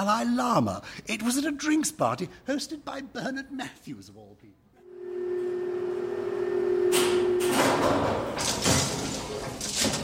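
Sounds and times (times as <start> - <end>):
speech: 0.0 - 4.6
steady low hum: 4.9 - 7.8
old lift concertina doors sliding shut: 7.0 - 10.0.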